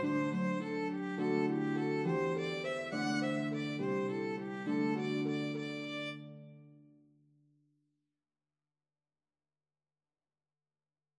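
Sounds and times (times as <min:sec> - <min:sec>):
harp: 0:00.0 - 0:06.6
violin melody in C: 0:00.0 - 0:06.7.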